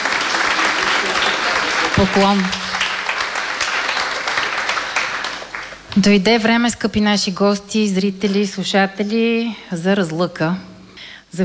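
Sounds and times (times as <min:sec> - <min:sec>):
audience applause: 0:00.0 - 0:06.0
speech: 0:02.0 - 0:02.6, 0:06.0 - 0:10.7.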